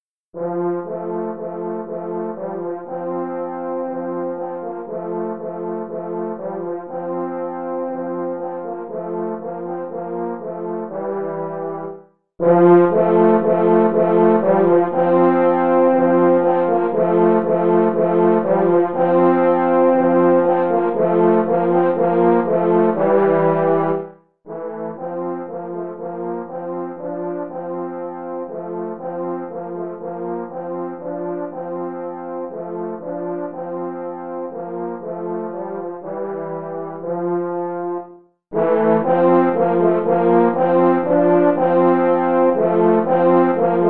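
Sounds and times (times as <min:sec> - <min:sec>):
easy classical French horn duet: 0:00.4 - 0:43.8.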